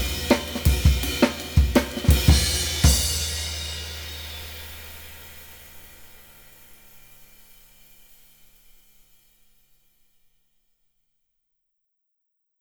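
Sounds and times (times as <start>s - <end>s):
compressed drums: 0.0s - 4.4s.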